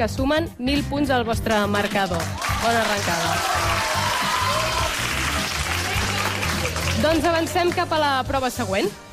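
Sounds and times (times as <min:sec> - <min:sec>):
speech: 0:00.0 - 0:04.0, 0:07.0 - 0:09.0
audience applause: 0:01.8 - 0:07.8.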